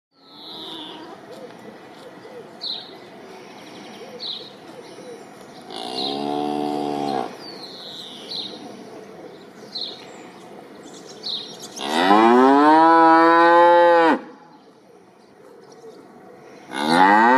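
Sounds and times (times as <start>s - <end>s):
cow mooing: 5.7s - 7.4s, 11.8s - 14.2s, 16.7s - 17.3s.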